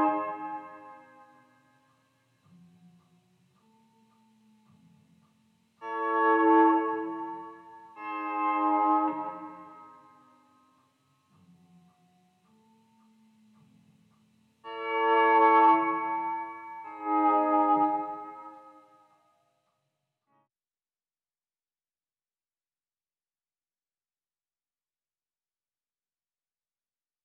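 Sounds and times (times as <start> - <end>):
guitar: 0.0 - 19.4.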